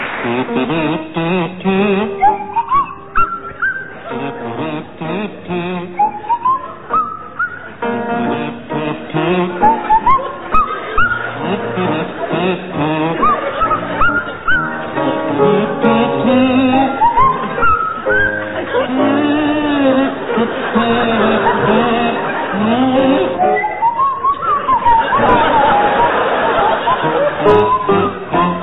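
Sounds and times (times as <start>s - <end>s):
laughter: 0.1s - 1.1s, 3.8s - 28.6s
kazoo playing a tune: 0.3s - 28.6s
Swanee whistle playing a tune: 2.1s - 4.1s, 5.9s - 7.8s, 13.2s - 14.8s, 16.9s - 18.6s, 23.4s - 28.5s.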